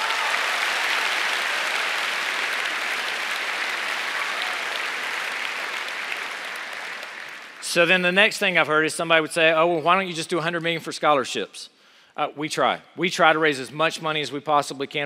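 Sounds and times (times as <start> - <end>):
audience applause: 0.0 - 7.9
speech: 7.7 - 15.0.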